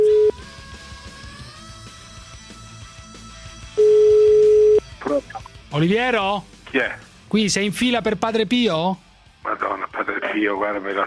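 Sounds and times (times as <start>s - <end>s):
telephone ringing tone on a phone line: 0.0s - 0.3s, 3.8s - 4.8s
speech: 5.8s - 9.0s, 10.4s - 11.0s.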